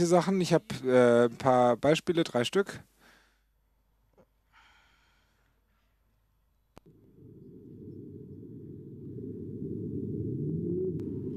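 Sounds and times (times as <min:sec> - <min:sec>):
speech: 0:00.0 - 0:03.0
whale call: 0:07.2 - 0:11.3.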